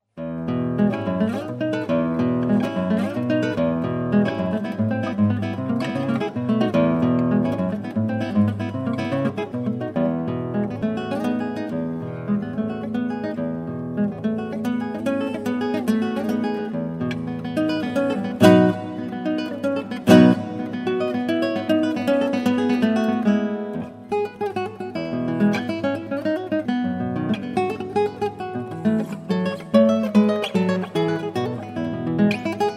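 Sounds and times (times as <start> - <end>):
romantic guitar music: 0.2 - 32.7.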